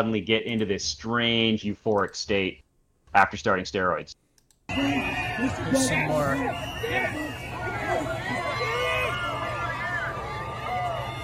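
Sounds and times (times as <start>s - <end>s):
speech: 0.0s - 7.4s
crowd cheering and shouting: 4.7s - 11.2s.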